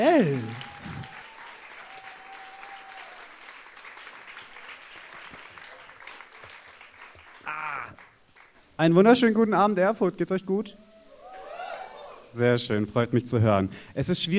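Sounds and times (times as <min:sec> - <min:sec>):
speech: 0:00.0 - 0:00.6, 0:08.8 - 0:10.8, 0:12.3 - 0:14.3
audience applause: 0:00.0 - 0:08.6.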